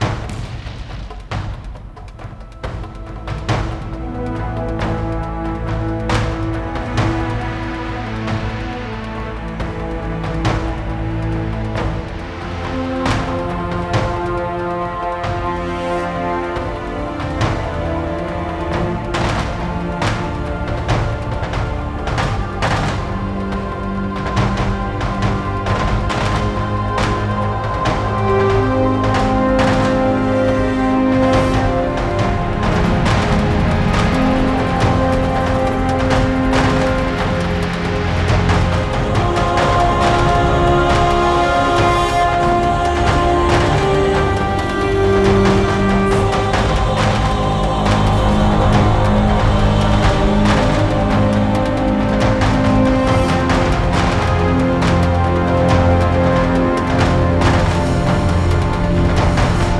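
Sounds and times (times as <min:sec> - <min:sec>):
epic music: 0:00.0 - 0:59.7.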